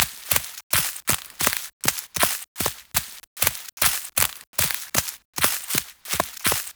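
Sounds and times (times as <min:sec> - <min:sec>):
horse walking through vegetation: 0:00.0 - 0:06.7.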